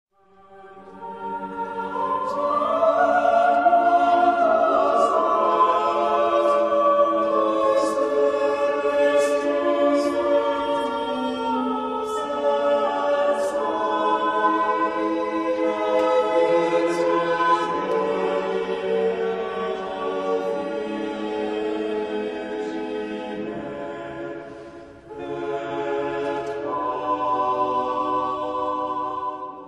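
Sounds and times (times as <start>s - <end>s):
choir of four voices singing a mass: 0.2s - 29.6s.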